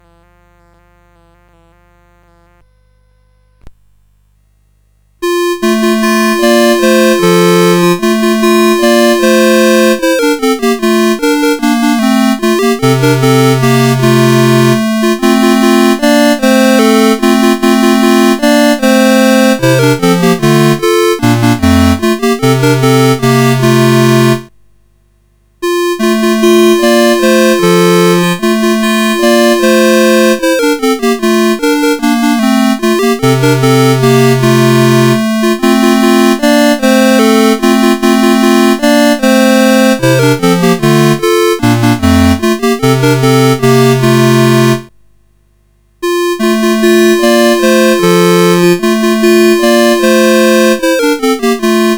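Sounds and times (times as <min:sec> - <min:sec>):
chiptune on CSG 8580 R5 SID chip: 0:05.2 - 0:24.5, 0:25.6 - 0:44.9, 0:46.0 - 0:51.9.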